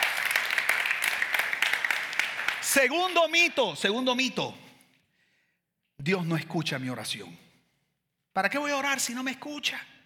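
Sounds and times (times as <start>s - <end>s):
crowd applause: 0.0s - 2.8s
speech: 2.8s - 4.6s, 6.0s - 7.4s, 8.4s - 9.9s.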